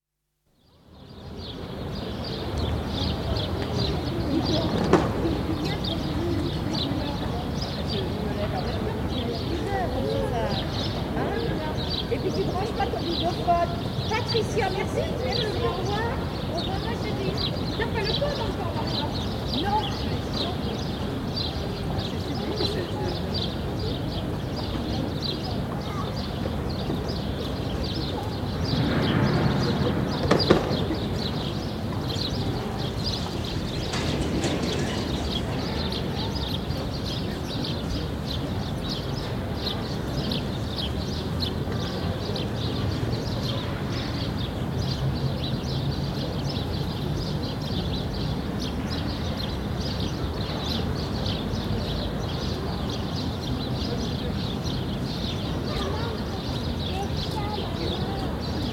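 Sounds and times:
birds: 0.6s - 58.7s
crowds in the Palais Royal Gardens: 0.8s - 58.7s
children playing: 2.0s - 47.8s, 48.6s - 58.7s
speech: 2.8s - 58.7s.

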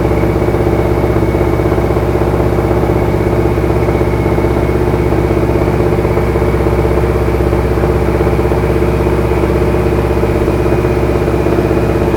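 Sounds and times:
AT-6D Harvard Mk III training aircraft flying, interior: 0.0s - 12.1s.

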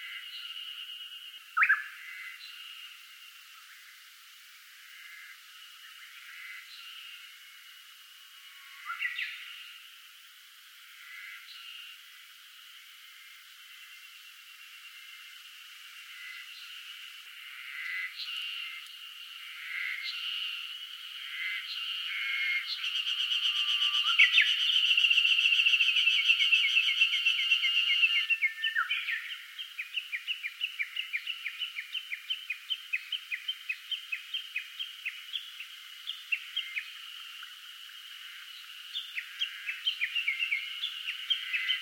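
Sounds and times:
birds on Osoresan in summer: 0.0s - 2.9s, 17.4s - 41.8s
insects on Osoresan in summer: 0.0s - 41.8s.

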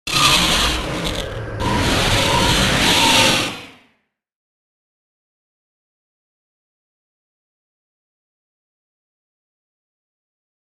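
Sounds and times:
faulty spacecraft engine: 0.0s - 3.7s.

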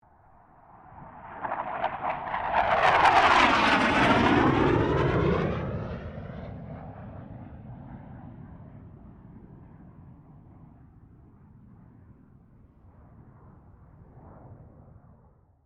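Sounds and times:
CA-27 Sabre jet aircraft passing: 0.2s - 12.0s.

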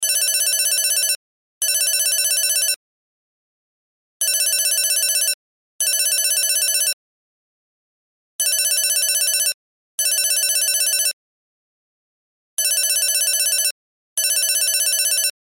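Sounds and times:
cell phone ringtone: 0.0s - 2.8s, 4.2s - 7.0s, 8.4s - 11.2s, 12.6s - 15.4s.

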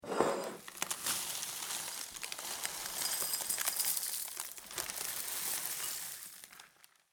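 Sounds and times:
cereal pouring into a glass bowl: 0.6s - 6.6s.

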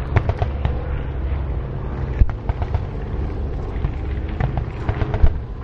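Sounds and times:
distant World War Two battlefield gunfire: 0.1s - 1.1s, 2.1s - 3.2s, 3.8s - 5.5s.

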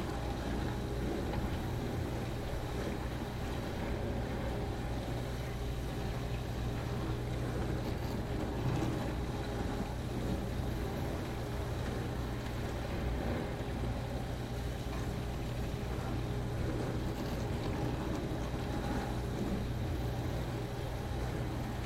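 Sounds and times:
dishwasher running rinse cycle: 0.0s - 21.8s.

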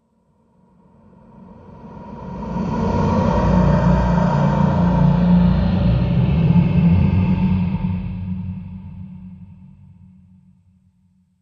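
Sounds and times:
horror ghost phantom sound: 1.2s - 10.2s.

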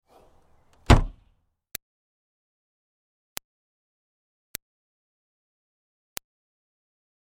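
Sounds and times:
Smart car hatch closing: 0.1s - 1.2s.

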